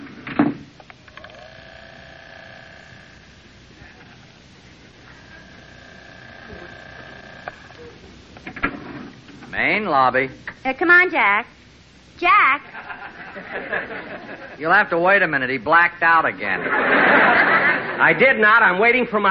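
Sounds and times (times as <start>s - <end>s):
elevator ride sound effect with mechanical hum and whining motor: 0.0s - 14.8s
speech: 9.6s - 11.6s, 12.2s - 12.7s, 13.5s - 19.2s
laughter: 12.6s - 14.7s, 16.4s - 18.4s.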